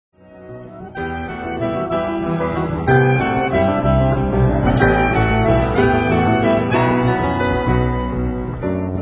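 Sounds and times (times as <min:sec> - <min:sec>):
bourree dance music: 0:00.7 - 0:08.9.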